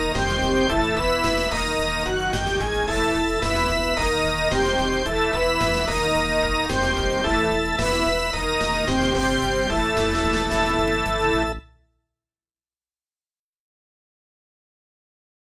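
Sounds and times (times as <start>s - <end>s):
MIDI battle music: 0.0s - 11.7s.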